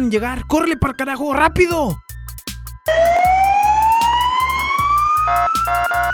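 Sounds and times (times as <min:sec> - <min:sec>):
speech: 0:00.0 - 0:02.0, 0:02.9 - 0:03.4
police car siren approaching: 0:02.9 - 0:06.1.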